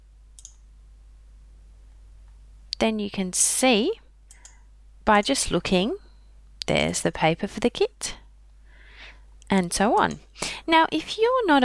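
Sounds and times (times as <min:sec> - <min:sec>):
low steady hum: 0:00.0 - 0:11.6
computer mouse click: 0:00.4 - 0:00.7, 0:04.3 - 0:04.6
speech: 0:02.8 - 0:04.0, 0:05.1 - 0:06.0, 0:06.7 - 0:08.2, 0:09.5 - 0:11.6.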